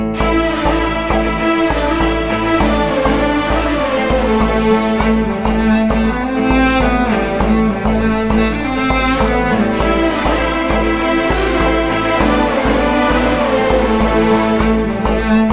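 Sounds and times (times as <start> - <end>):
Telugu background music ringtone: 0.1 - 15.5.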